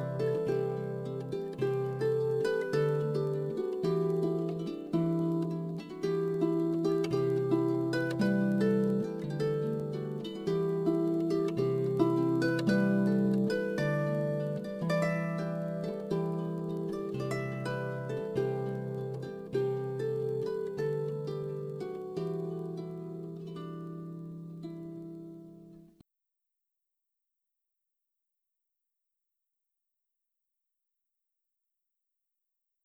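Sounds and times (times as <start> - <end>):
Celtic harp: 0.0 - 26.0.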